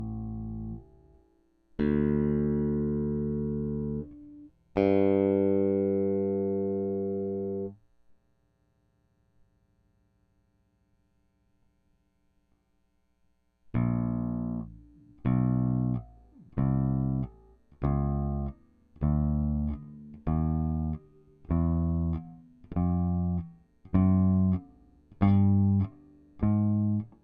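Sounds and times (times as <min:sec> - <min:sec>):
bass DI through Audient iD14 interface: 0:00.0 - 0:07.8, 0:13.7 - 0:27.2.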